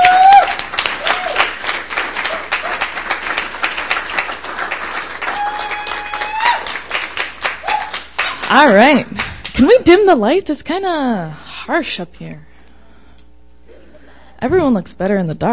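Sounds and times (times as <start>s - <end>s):
audience hooting and hollering: 0.0s - 3.8s, 5.1s - 8.1s
audience applause: 0.0s - 9.8s
speech: 8.5s - 12.5s, 14.4s - 15.5s.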